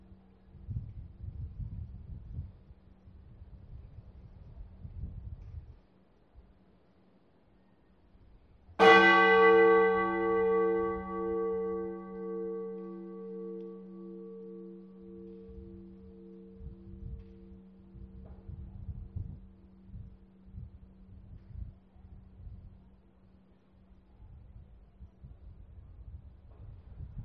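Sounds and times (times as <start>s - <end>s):
bell: 8.8s - 18.6s.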